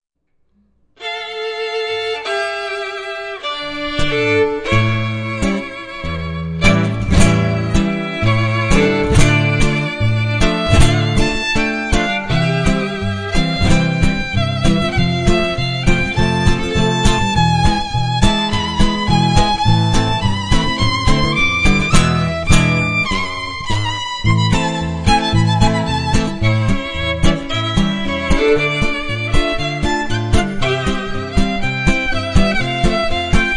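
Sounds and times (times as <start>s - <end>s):
Hungarian csardas music: 1.0s - 33.5s.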